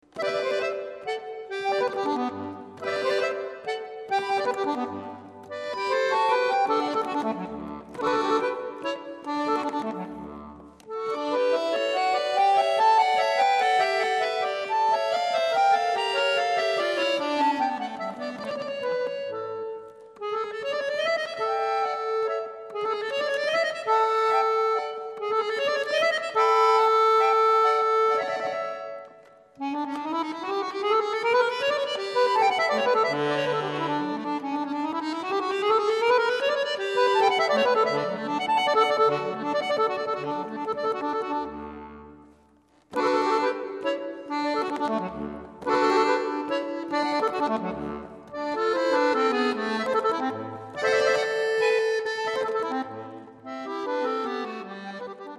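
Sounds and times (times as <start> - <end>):
sonata in G major on accordion: 0.0 - 55.3.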